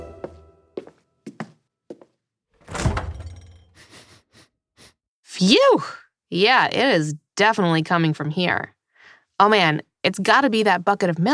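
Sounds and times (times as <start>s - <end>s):
fridge door opening: 2.6s - 3.6s
speech: 5.4s - 8.8s, 9.4s - 11.3s.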